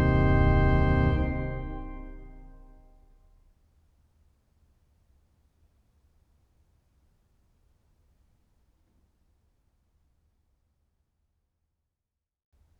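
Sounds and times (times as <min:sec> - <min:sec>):
organ playing canons: 0:00.0 - 0:03.0.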